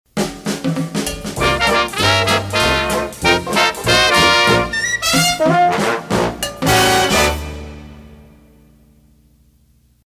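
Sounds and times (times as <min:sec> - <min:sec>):
dixieland jazz: 0:00.5 - 0:08.3.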